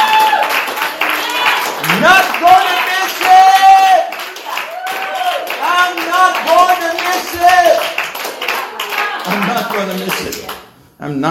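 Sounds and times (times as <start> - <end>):
audience applause: 0.0 - 10.6.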